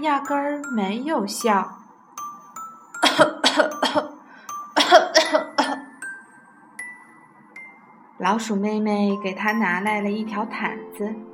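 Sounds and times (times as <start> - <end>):
speech: 0.0 - 1.8, 3.2 - 4.1, 8.2 - 11.3
soft chiming tones: 0.0 - 11.3
elephant's loud harsh coughing: 3.0 - 4.1, 4.8 - 5.9.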